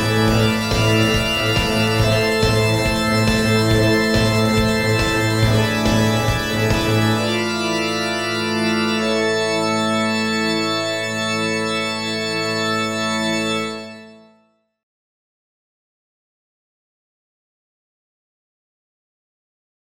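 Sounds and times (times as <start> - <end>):
trance music: 0.0 - 14.2.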